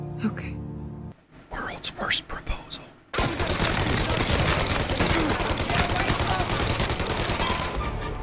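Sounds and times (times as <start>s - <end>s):
speech: 0.2s - 0.6s, 1.9s - 2.8s
gunfire in a radio drama: 3.1s - 8.0s.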